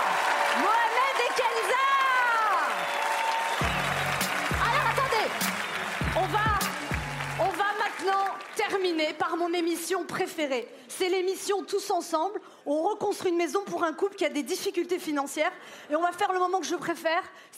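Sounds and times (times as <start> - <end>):
cheering and whooping voices: 0.0 - 8.1
audience applause: 0.0 - 9.4
speech: 9.0 - 17.5.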